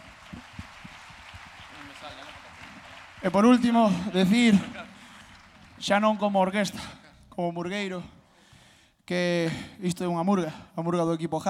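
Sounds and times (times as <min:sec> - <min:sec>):
audience applauding: 0:00.0 - 0:06.9
speech: 0:02.0 - 0:02.4, 0:03.2 - 0:04.8, 0:05.8 - 0:08.2, 0:09.1 - 0:11.4.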